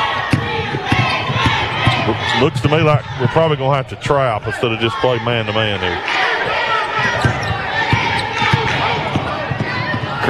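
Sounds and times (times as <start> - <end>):
basketball dribbled on the court during a women's game: 0.0 - 3.2, 6.1 - 10.2
crowd murmur in the gym: 0.0 - 10.2
speech: 2.4 - 6.7.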